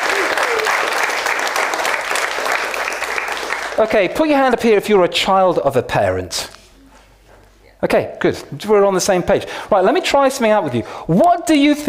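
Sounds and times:
audience applause: 0.0 - 4.0
speech: 3.8 - 6.5, 7.8 - 11.8.

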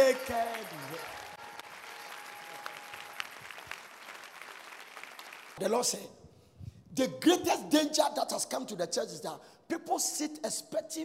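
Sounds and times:
audience applauding: 0.0 - 5.6
speech: 0.2 - 1.2, 5.6 - 6.2, 6.9 - 11.0.

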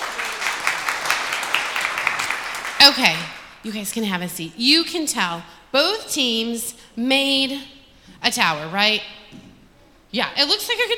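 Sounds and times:
audience applause: 0.0 - 2.8
speech: 2.9 - 9.4, 10.1 - 10.9.

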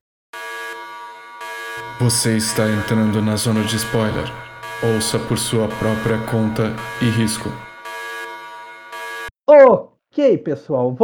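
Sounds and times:
speech: 1.8 - 7.7, 9.6 - 11.0
little alert bell sound effect: 1.8 - 9.1.

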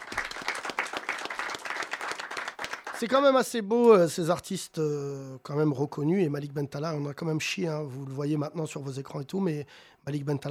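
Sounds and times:
crowd clapping: 0.0 - 3.4
speech: 3.0 - 10.4.

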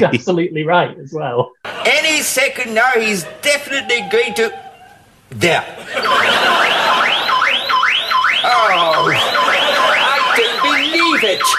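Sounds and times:
speech: 0.0 - 4.6, 5.3 - 6.9, 8.4 - 9.3, 11.2 - 11.5
laughter: 1.6 - 11.5
car alarm going off: 6.0 - 11.5.

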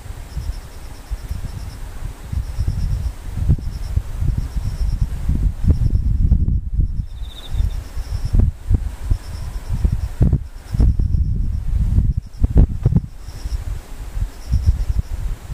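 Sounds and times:
insects chirping in high pulses: 0.0 - 15.5.

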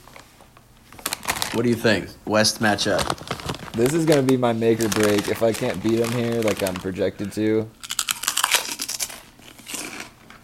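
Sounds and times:
speech: 1.6 - 7.8
eating pork rinds: 3.0 - 10.4.

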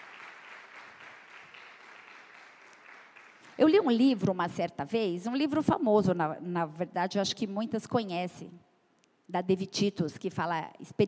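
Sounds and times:
audience applause: 0.0 - 3.6
speech: 3.6 - 8.7, 9.3 - 11.0.

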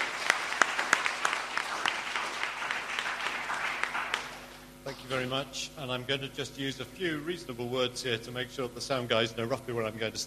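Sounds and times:
independence debate audience applause welcoming a speaker: 0.0 - 4.6
speech: 4.9 - 10.2.

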